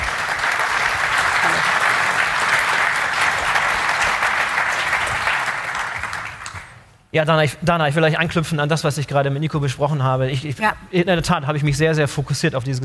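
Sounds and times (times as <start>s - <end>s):
applause: 0.0s - 6.9s
speech: 7.1s - 12.8s.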